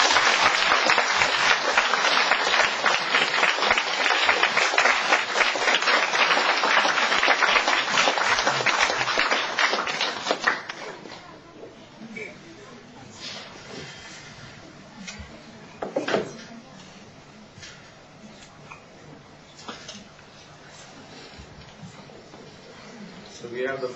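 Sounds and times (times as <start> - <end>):
church audience clapping to welcome a pastor: 0.0 - 11.1.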